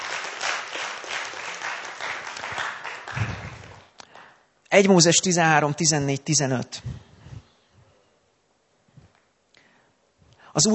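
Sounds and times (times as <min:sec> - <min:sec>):
audience applause: 0:00.0 - 0:04.0
speech: 0:04.7 - 0:07.0, 0:10.6 - 0:10.7.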